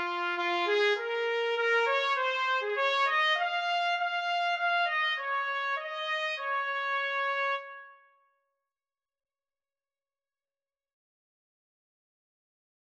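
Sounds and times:
trumpet duet: 0.0 - 8.0.

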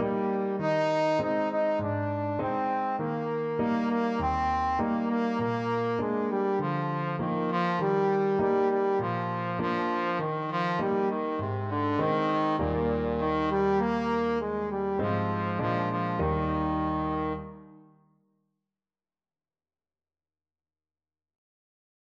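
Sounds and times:
trombone melody: 0.0 - 17.8.

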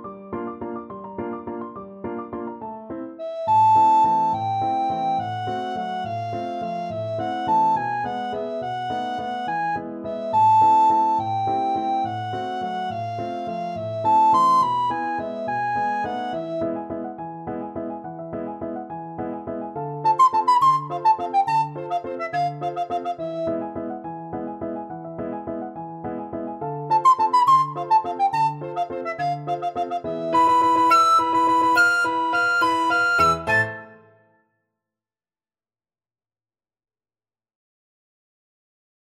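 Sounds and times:
recorder playing classical piece: 3.2 - 16.7, 20.0 - 23.8, 26.9 - 34.2.

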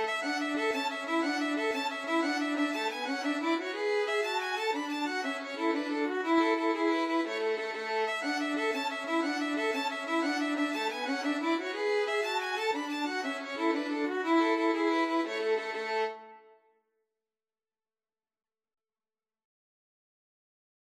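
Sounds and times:
violin duet playing an Irish jig medley: 0.0 - 16.3.

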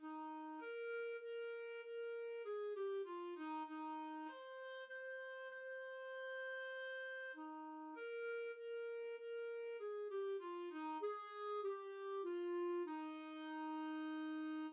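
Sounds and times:
clarinet melody: 0.0 - 14.7.

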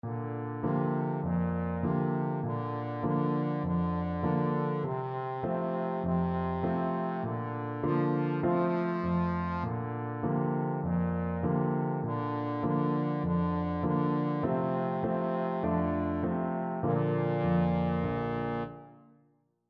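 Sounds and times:
trombone: 0.0 - 18.9.

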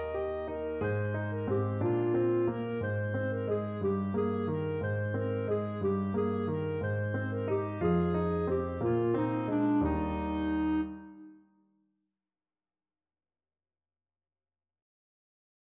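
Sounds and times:
clarinet melody: 0.0 - 11.5.

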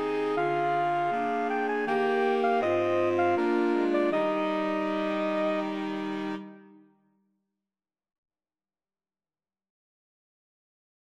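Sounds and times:
saxophone quartet: 0.0 - 6.8.

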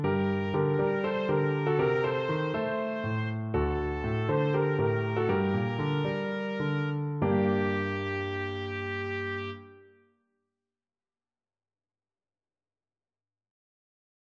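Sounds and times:
trumpet: 0.0 - 10.0.

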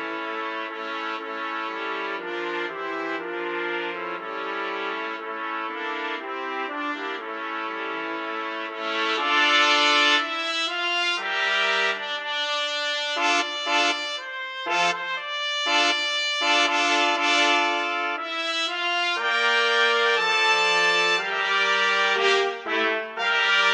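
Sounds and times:
trumpet quartet playing: 0.0 - 23.7.

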